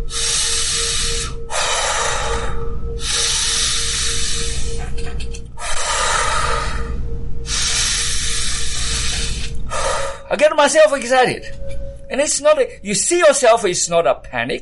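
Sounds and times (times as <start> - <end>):
person breathing hard, demonstrating overexcited breathing: 0.0 - 10.3
speech: 10.4 - 14.6.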